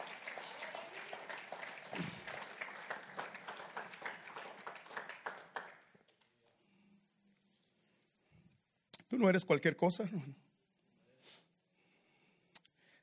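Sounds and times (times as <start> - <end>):
audience applauding: 0.0 - 6.3
speech: 9.2 - 10.5.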